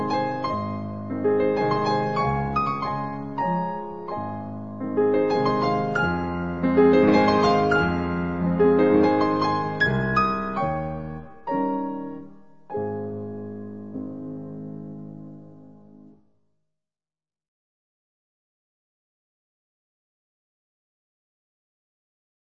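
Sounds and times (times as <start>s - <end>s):
waltz in A flat major: 0.0s - 15.8s.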